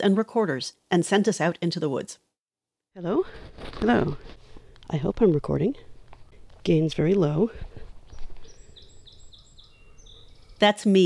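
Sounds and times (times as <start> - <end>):
speech: 0.0 - 2.3, 3.0 - 5.9, 6.6 - 7.7, 10.6 - 11.0
song sparrow singing: 4.9 - 10.7.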